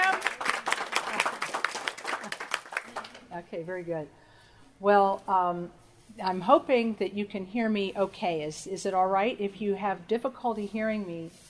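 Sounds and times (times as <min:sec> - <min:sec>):
audience applause: 0:00.0 - 0:03.2
speech: 0:03.5 - 0:04.2, 0:04.8 - 0:11.4.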